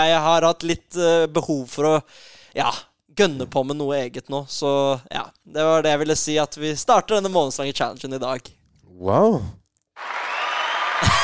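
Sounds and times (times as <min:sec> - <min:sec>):
speech: 0:00.0 - 0:09.6
applause: 0:10.0 - 0:11.2.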